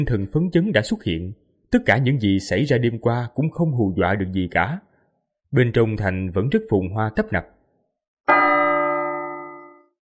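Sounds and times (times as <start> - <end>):
speech: 0.0 - 4.9, 5.5 - 7.5, 8.3 - 8.5
large bell ringing: 8.3 - 10.0.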